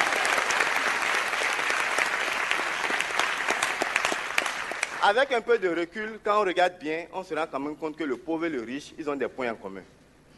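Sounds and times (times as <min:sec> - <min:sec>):
audience applause: 0:00.0 - 0:05.2
speech: 0:05.0 - 0:10.0.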